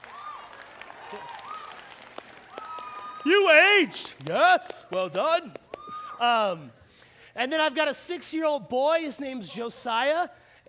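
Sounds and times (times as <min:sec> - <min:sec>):
audience applause at a live talk: 0:00.0 - 0:04.4
speech: 0:01.1 - 0:01.4, 0:03.2 - 0:05.6, 0:06.2 - 0:10.6.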